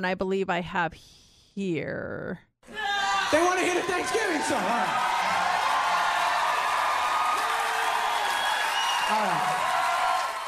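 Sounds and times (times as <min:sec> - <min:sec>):
speech: 0:00.0 - 0:05.3, 0:09.1 - 0:09.7
large crowd clapping: 0:03.3 - 0:10.4.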